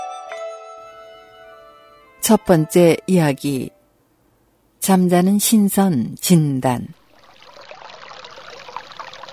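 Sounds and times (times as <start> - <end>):
speech: 2.2 - 3.8, 4.8 - 7.0
stream water babbling at the foot of a mountain: 7.0 - 9.3.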